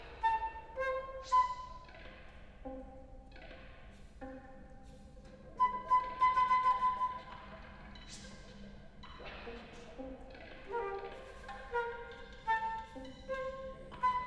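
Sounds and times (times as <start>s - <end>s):
flute music on magnetic tape: 0.0s - 2.0s, 5.5s - 7.5s, 10.7s - 14.2s.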